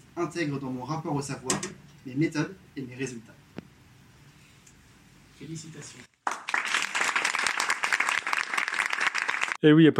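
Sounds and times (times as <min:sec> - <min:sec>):
speech: 0:00.2 - 0:03.4, 0:05.4 - 0:06.1, 0:09.6 - 0:09.9
recorded applause played: 0:06.2 - 0:09.6.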